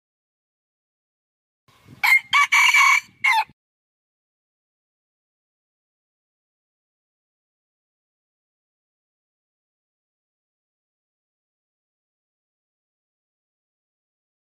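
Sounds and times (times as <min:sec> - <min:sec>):
red junglefowl crowing: 0:02.0 - 0:03.6.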